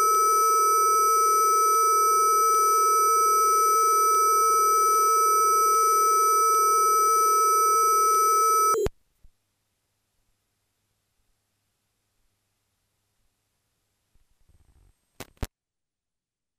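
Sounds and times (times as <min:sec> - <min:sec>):
300 baud modem tones: 0:00.0 - 0:08.9.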